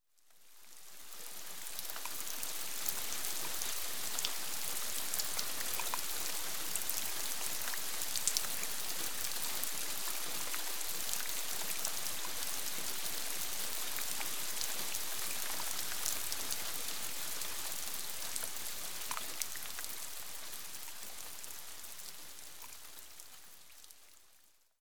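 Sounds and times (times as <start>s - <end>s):
light drizzling rain: 0.2s - 24.6s.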